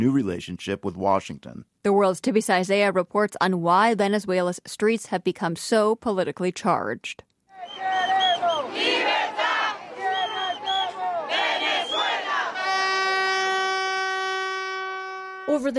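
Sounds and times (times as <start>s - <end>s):
speech: 0.0s - 7.3s, 15.5s - 15.7s
street protest crowd chanting and shouting: 7.6s - 12.8s
steady horn-like tone: 11.6s - 15.7s.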